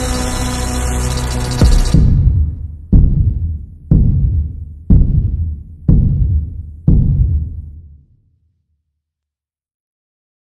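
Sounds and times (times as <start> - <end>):
slowed music with reverb: 0.0 - 8.0.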